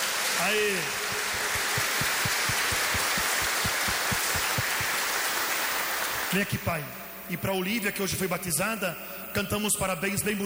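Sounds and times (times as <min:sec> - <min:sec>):
audience applause: 0:00.0 - 0:06.4
speech: 0:00.4 - 0:01.6, 0:06.3 - 0:10.4.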